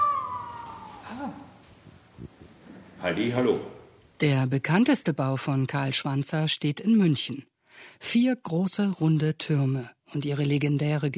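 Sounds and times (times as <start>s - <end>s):
wolf howl: 0.0s - 1.5s
speech: 3.0s - 11.1s.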